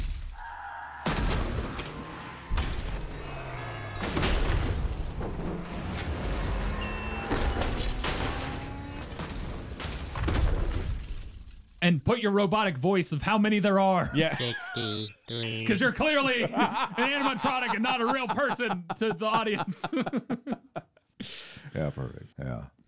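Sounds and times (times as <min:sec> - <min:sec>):
car crash sound effect: 0:00.0 - 0:11.8
speech: 0:11.9 - 0:20.6, 0:21.2 - 0:22.8
laughter: 0:14.0 - 0:21.0.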